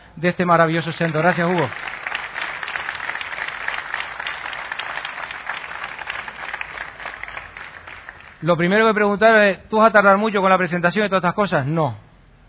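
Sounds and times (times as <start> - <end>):
speech: 0.2 - 1.9, 8.4 - 12.0
crowd applause: 0.8 - 8.4.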